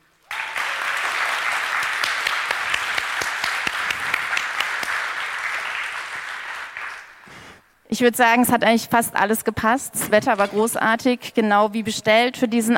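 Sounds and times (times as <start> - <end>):
audience applause: 0.2 - 7.6
speech: 8.0 - 12.7.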